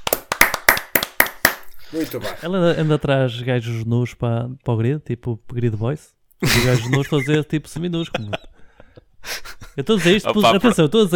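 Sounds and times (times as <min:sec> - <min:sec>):
round of applause, hands clapping: 0:00.0 - 0:01.8
speech: 0:01.9 - 0:08.4, 0:09.8 - 0:11.1.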